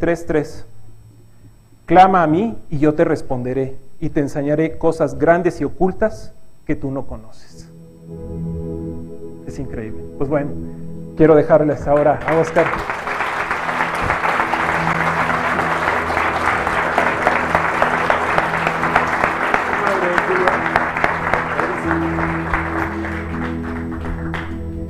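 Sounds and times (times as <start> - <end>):
speech: 0.0 - 0.7, 1.9 - 8.5, 9.5 - 13.1
audience applause: 12.2 - 24.8.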